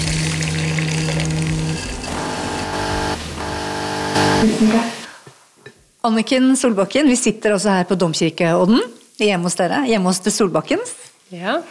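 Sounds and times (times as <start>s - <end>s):
coffee machine brewing: 0.0s - 4.6s
speech: 4.4s - 5.0s, 6.0s - 11.6s.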